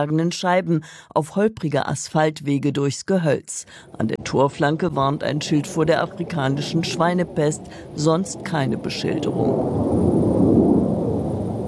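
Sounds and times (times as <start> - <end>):
speech: 0.0 - 10.2
rumble of NATO fighter jets at high altitude: 5.2 - 11.6.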